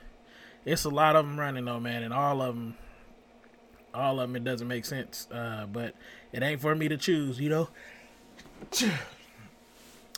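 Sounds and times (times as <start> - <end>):
speech: 0.6 - 2.8, 3.9 - 8.0, 8.6 - 9.2
person sneezing: 8.7 - 9.5.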